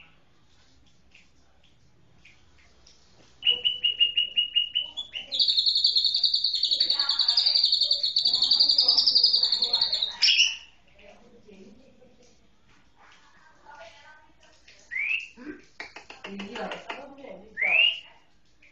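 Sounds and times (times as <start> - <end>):
white-rumped shama singing: 3.4 - 10.7, 17.6 - 18.1.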